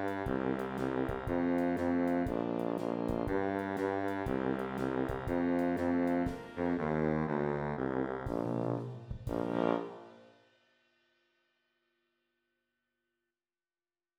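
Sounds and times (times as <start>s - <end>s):
tuba: 0.0s - 10.6s.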